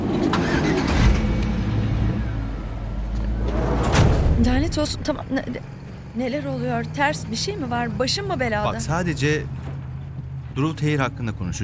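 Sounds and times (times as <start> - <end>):
minibus engine starting and driving: 0.0 - 11.6
speech: 4.4 - 9.7, 10.6 - 11.6.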